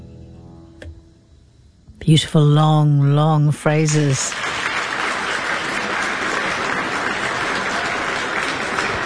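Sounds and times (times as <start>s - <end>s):
speech: 2.1s - 4.5s
audience applause after violin performance: 3.9s - 9.0s.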